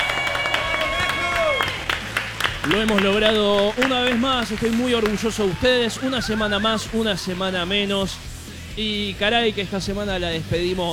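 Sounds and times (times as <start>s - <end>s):
audience applause cheering the arrival of Friday morning: 0.0s - 7.0s
speech: 2.6s - 10.9s
laughter: 3.8s - 8.2s.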